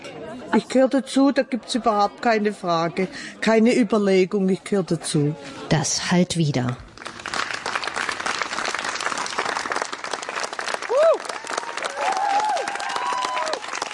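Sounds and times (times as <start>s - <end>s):
speech: 0.4s - 6.9s
audience applause: 6.9s - 13.9s
whoop: 10.9s - 13.9s.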